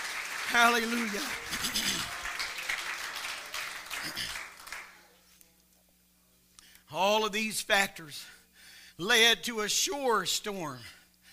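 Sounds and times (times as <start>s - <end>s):
audience clapping: 0.0s - 5.2s
speech: 0.5s - 2.2s, 4.0s - 4.4s, 6.9s - 8.4s, 9.0s - 11.0s.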